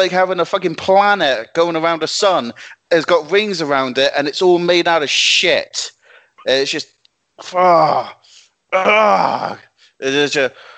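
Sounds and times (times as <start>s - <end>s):
speech: 0.0s - 10.7s
person groaning in frustration: 7.4s - 8.1s, 8.8s - 9.6s.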